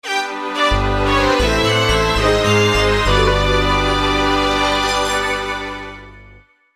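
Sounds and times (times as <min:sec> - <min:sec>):
game over jingle: 0:00.7 - 0:06.4.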